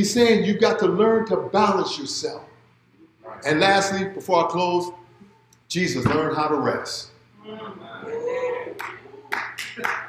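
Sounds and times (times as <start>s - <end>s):
speech: 0.0s - 2.5s, 3.3s - 5.0s, 5.7s - 8.1s, 9.8s - 10.0s
audience clapping: 8.8s - 10.0s.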